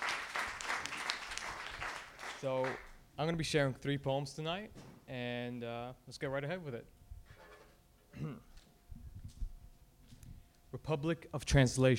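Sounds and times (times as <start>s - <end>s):
audience applause: 0.0s - 2.9s
speech: 2.4s - 7.0s, 8.2s - 8.5s, 10.7s - 11.9s.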